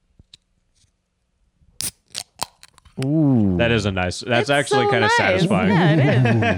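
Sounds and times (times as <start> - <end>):
can being opened with fizz: 1.8 - 3.0
speech: 3.0 - 6.5
laughter: 4.8 - 6.5.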